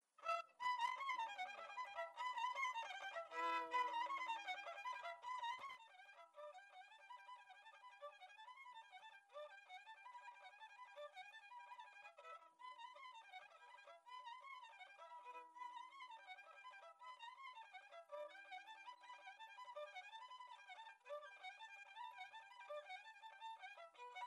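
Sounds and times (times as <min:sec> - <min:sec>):
violin folk tune: 0:00.0 - 0:24.2.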